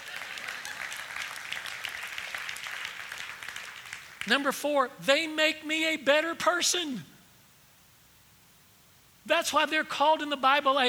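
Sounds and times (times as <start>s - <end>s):
audience clapping: 0.0s - 4.3s
speech: 4.2s - 7.1s, 9.3s - 10.8s.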